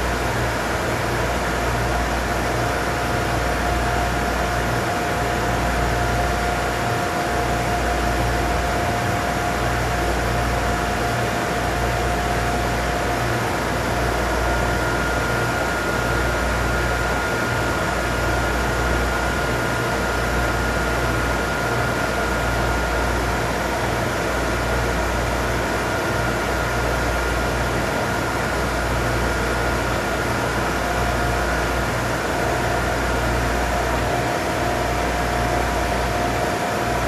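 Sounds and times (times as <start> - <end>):
loud generator noise: 0.0 - 37.0.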